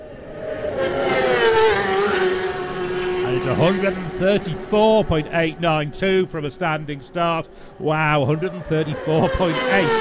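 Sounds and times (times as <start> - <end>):
race leader's machine passing the grandstand at speed on Glen Crutchery Road: 0.0 - 10.0
speech: 3.4 - 10.0.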